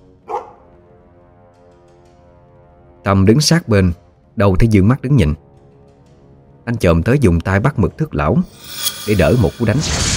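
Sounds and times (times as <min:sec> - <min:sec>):
dog barking: 0:00.2 - 0:00.7
speech: 0:03.0 - 0:05.4, 0:06.7 - 0:10.1.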